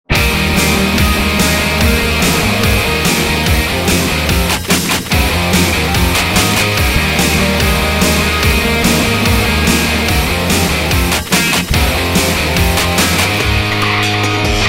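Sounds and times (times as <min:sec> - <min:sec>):
rock music: 0:00.0 - 0:14.6.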